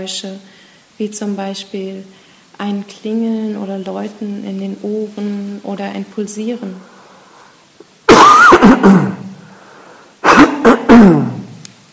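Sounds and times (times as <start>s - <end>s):
speech: 0.0s - 6.9s, 8.8s - 9.2s
cough: 8.1s - 9.3s, 10.2s - 11.5s.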